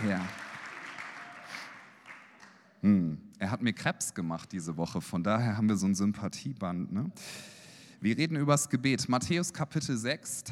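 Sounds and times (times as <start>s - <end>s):
speech: 0.0s - 0.4s, 2.8s - 10.5s
audience applause: 0.0s - 2.6s.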